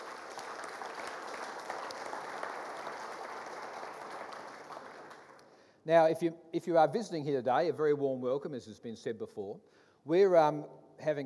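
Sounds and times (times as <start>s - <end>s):
church congregation applauding the musicians: 0.0s - 5.6s
speech: 5.8s - 11.2s.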